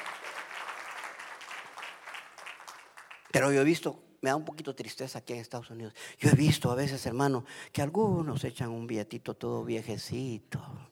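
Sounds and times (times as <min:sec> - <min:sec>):
audience clapping hands: 0:00.0 - 0:03.6
speech: 0:03.3 - 0:10.8.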